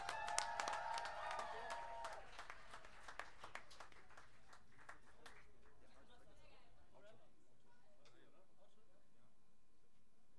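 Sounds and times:
audience applauding: 0.0s - 5.6s.

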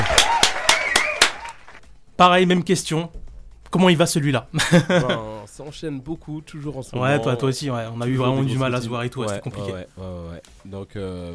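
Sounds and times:
applause: 0.0s - 1.9s
speech: 2.2s - 11.3s
laughter: 4.6s - 5.4s.

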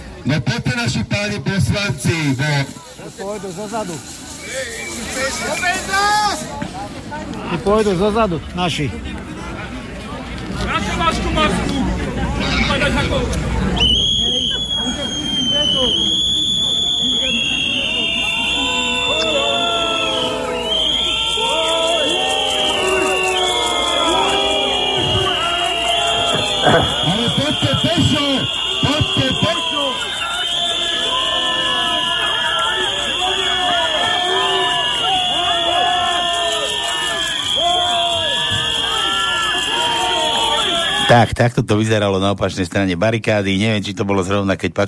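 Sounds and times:
protest crowd shouting and booing: 0.0s - 9.4s, 10.3s - 41.4s
speech: 0.2s - 9.4s, 10.6s - 14.0s, 41.1s - 44.8s.

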